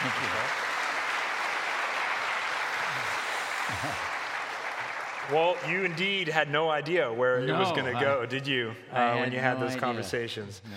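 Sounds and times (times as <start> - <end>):
audience clapping to welcome a guest onto a stage: 0.0 - 7.0
speech: 3.7 - 4.1, 5.3 - 10.7.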